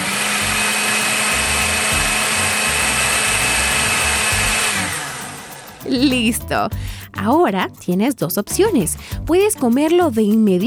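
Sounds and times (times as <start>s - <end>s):
food processor blending a thick frozen yogurt mixture: 0.0s - 5.9s
speech: 5.9s - 10.6s.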